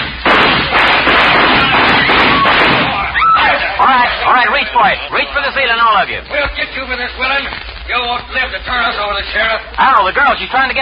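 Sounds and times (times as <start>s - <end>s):
gunshots fired into the air: 0.0s - 3.6s
speech: 4.4s - 10.8s.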